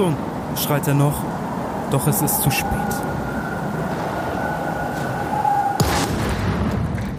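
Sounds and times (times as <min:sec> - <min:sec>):
speech: 0:00.0 - 0:03.2
faint whine: 0:00.0 - 0:05.8
shell exploding: 0:05.8 - 0:07.1.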